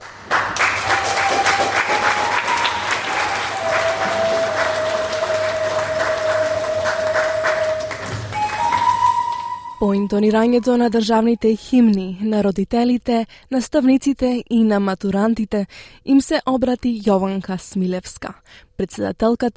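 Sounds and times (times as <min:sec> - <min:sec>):
large audience applauding at a formal graduation ceremony in Sunshine West: 0:00.0 - 0:09.8
speech: 0:10.0 - 0:19.5.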